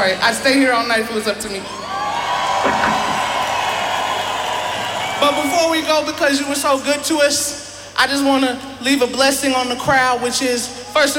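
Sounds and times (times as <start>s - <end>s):
speech: 0.0s - 1.8s, 5.2s - 11.1s
concert crowd cheering: 1.5s - 6.7s.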